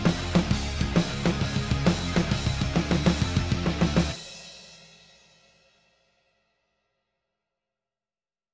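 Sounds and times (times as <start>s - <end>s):
metal music mix: 0.0s - 4.2s.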